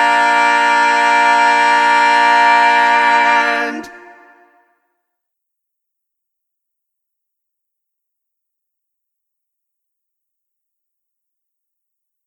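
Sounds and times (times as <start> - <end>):
backing track without lead: 0.0 - 4.6.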